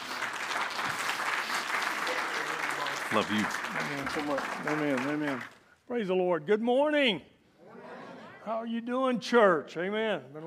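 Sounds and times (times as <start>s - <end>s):
church congregation applauding a guest speaker at a morning service: 0.0s - 5.8s
speech: 3.1s - 7.3s, 8.4s - 10.4s.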